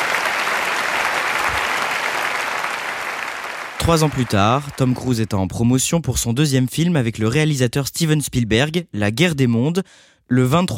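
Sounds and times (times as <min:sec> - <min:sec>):
audience applauding enthusiastically: 0:00.0 - 0:05.3
speech: 0:03.9 - 0:10.7.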